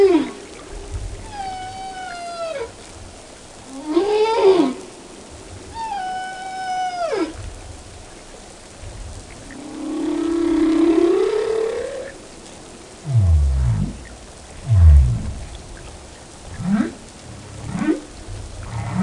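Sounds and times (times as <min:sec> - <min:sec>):
humpback whale song off the coast of Japan: 0:00.0 - 0:02.9, 0:03.7 - 0:04.9, 0:05.6 - 0:07.6, 0:09.3 - 0:12.4, 0:13.0 - 0:19.0.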